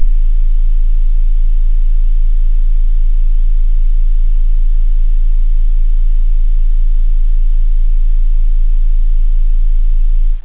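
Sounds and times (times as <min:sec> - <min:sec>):
sub bass: 0:00.0 - 0:10.4.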